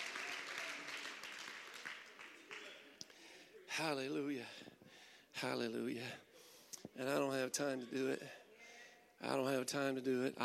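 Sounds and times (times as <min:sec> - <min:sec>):
audience hand clap of praise: 0:00.0 - 0:03.2
speech: 0:03.8 - 0:04.8, 0:05.4 - 0:06.3, 0:06.9 - 0:08.4, 0:09.2 - 0:10.4.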